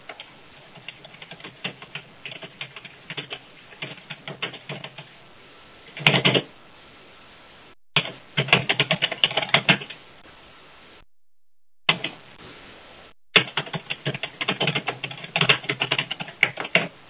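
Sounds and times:
typing on a computer keyboard into a chat box: 0:00.1 - 0:05.1, 0:06.0 - 0:06.5, 0:08.0 - 0:10.0, 0:13.4 - 0:16.9.

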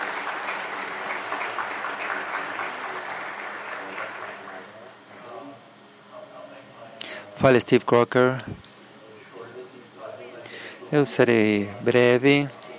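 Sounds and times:
applause at a board meeting approving a motion by acclamation: 0:00.0 - 0:04.9
speech: 0:07.4 - 0:08.6, 0:10.9 - 0:12.6.

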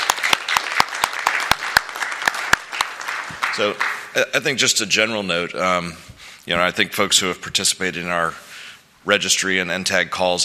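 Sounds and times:
round of applause: 0:00.0 - 0:04.2
speech: 0:03.6 - 0:10.4.

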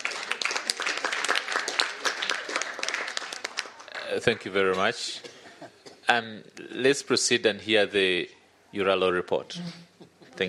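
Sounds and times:
audience applause: 0:00.0 - 0:04.4
speech: 0:04.2 - 0:05.4, 0:06.1 - 0:10.4.

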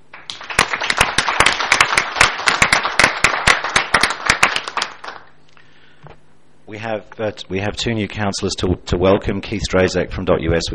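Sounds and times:
applause in a council meeting: 0:00.0 - 0:05.4
speech: 0:06.7 - 0:10.7.

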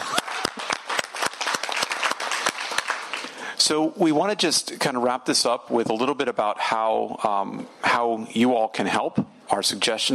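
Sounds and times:
crowd applause: 0:00.0 - 0:03.4
speech: 0:03.7 - 0:10.1.

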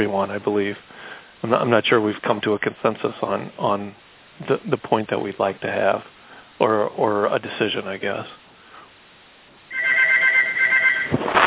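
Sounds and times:
speech: 0:00.0 - 0:08.4
room telephone ringing: 0:09.7 - 0:11.2.

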